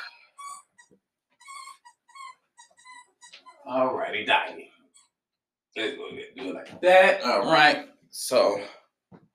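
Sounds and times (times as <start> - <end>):
squeaky toy squeaking: 0.4 - 3.7
speech: 3.7 - 4.6, 5.8 - 8.8.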